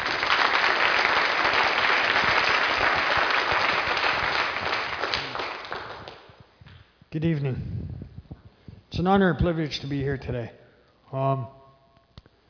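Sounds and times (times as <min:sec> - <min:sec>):
audience applause: 0:00.0 - 0:06.3
speech: 0:07.2 - 0:07.8, 0:09.0 - 0:11.6.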